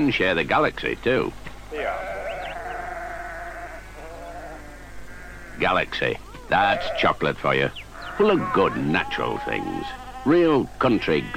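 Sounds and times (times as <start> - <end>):
speech: 0.0 - 2.0, 5.6 - 11.3
lamb bleating: 1.7 - 7.2, 8.0 - 11.3.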